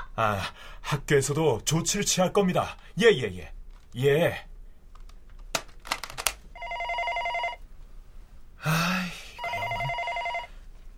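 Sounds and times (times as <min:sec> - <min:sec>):
speech: 0:00.2 - 0:04.5
telephone bell ringing: 0:06.5 - 0:07.6, 0:09.4 - 0:10.7.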